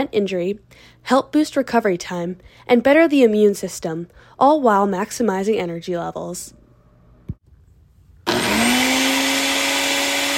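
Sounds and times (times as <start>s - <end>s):
speech: 0.0s - 6.6s
blender mixing a drink: 8.3s - 10.3s.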